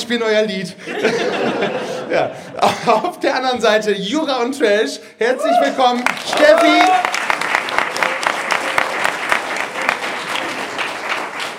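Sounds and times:
speech: 0:00.1 - 0:07.2
laughter: 0:00.8 - 0:03.2
audience applause: 0:05.6 - 0:11.5.

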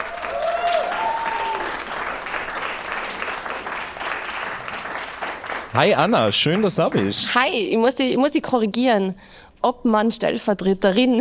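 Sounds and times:
audience applause: 0:00.0 - 0:07.3
speech: 0:05.8 - 0:11.1.

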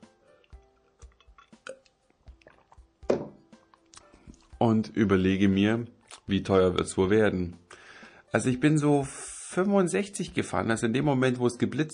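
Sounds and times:
person drinking a sip of water: 0:00.2 - 0:04.6
speech: 0:04.6 - 0:07.6, 0:08.3 - 0:11.9.

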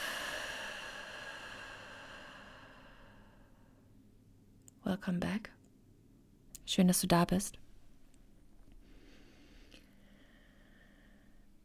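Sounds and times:
slow breath in through the nose and out through the mouth in guided breathing exercise: 0:00.0 - 0:04.0, 0:08.7 - 0:11.6
speech: 0:04.9 - 0:05.6, 0:06.7 - 0:07.6.

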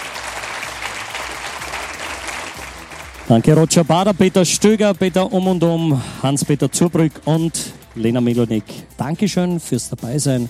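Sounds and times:
loud audience applause: 0:00.0 - 0:03.5
speech: 0:03.3 - 0:10.4.

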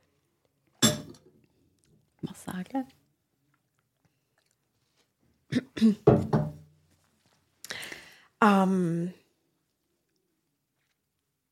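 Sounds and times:
ceramic coffee cup clinking: 0:00.8 - 0:01.2
speech: 0:02.4 - 0:03.0, 0:05.8 - 0:06.4, 0:08.4 - 0:09.2
soft clatter and faint shuffling: 0:06.8 - 0:07.6.

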